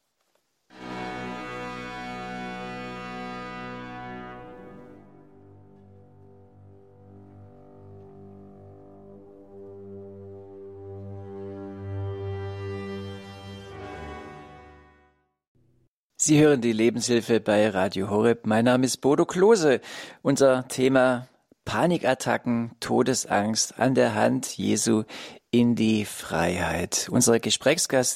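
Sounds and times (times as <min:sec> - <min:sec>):
symphony orchestra playing classical music: 0:00.8 - 0:15.2
speech: 0:16.3 - 0:28.1.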